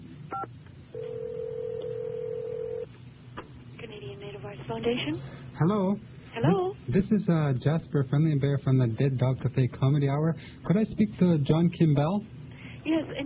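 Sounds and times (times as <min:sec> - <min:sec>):
long steady tone on the telephone line: 0:00.4 - 0:02.9
speech: 0:04.8 - 0:13.1.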